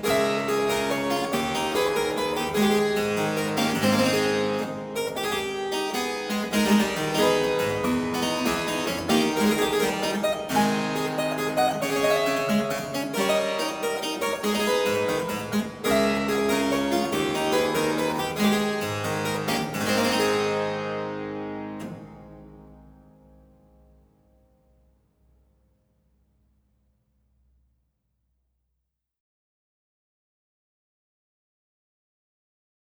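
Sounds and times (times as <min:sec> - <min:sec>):
harpsichord gigue: 0:00.0 - 0:20.8.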